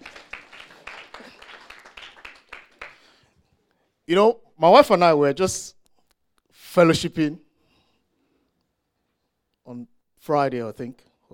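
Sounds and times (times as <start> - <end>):
audience clapping: 0.0 - 3.3
speech: 4.1 - 5.8, 6.8 - 7.4, 9.7 - 11.3.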